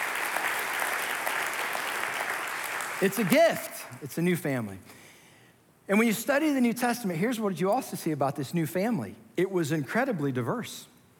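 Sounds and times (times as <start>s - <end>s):
audience applauding: 0.0s - 3.6s
speech: 3.0s - 5.0s, 5.9s - 10.9s.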